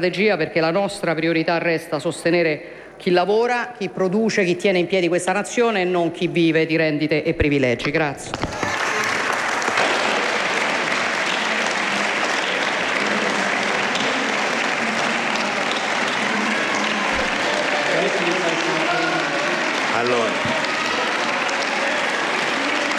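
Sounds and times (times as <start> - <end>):
speech: 0.0 - 8.8
murmur of voices: 8.2 - 22.9
applause in parliament chamber: 8.3 - 22.9.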